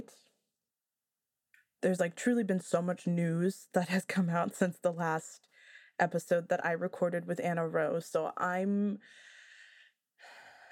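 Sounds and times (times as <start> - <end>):
speech: 1.8 - 9.3
person taking a deep breath: 9.0 - 10.7.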